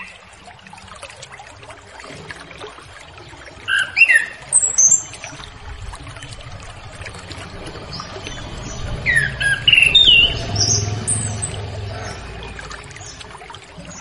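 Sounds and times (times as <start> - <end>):
Orange-headed thrush singing whistled and warbled notes: 3.7 - 5.3, 7.9 - 13.2.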